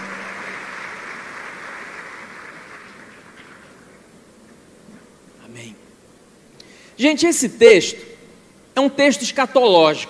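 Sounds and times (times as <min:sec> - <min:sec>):
applause: 0:00.0 - 0:03.8
speech: 0:07.0 - 0:08.1, 0:08.8 - 0:10.0.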